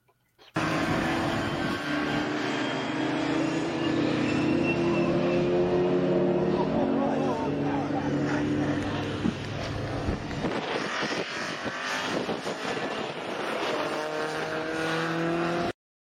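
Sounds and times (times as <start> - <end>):
touring car engine roaring while spinning on a very wet race track: 0.5 - 15.8
wind buffeting on the microphone: 8.6 - 13.6.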